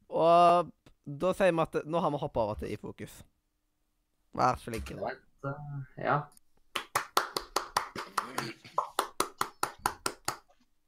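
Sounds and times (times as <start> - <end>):
speech: 0.2 - 3.3, 4.3 - 6.4
weak scattered hand clapping: 6.7 - 10.7.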